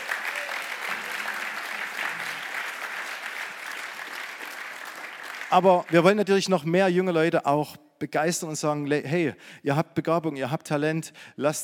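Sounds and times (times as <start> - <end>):
audience applause: 0.0 - 6.1
speech: 5.5 - 11.6.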